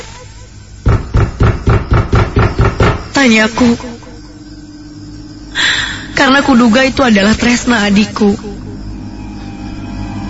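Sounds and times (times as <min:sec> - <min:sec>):
loud heavy banging on a door: 0:00.8 - 0:03.2
speech: 0:03.2 - 0:03.9, 0:06.2 - 0:08.6.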